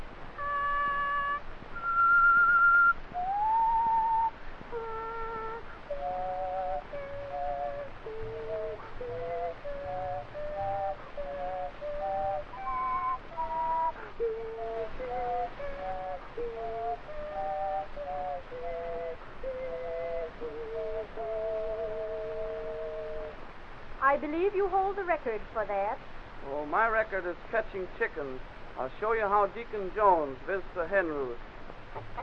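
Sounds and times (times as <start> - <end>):
whistling several tones at once: 0.4 - 23.4
speech: 24.2 - 31.5.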